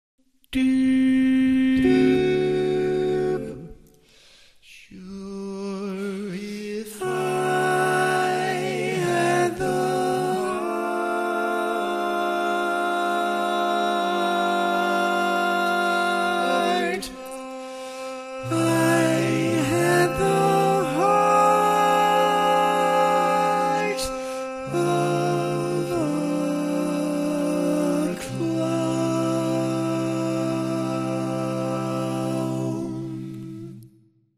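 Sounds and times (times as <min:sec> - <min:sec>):
barbershop tenor singing: 0:00.5 - 0:03.8, 0:04.7 - 0:33.9.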